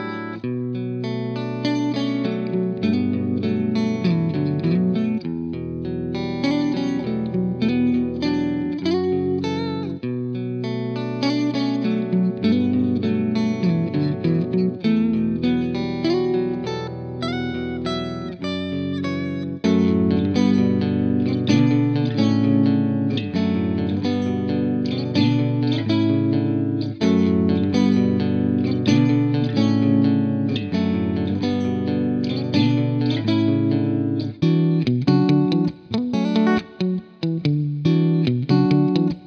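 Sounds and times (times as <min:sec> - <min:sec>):
clean guitar stacks: 0:00.0 - 0:39.2.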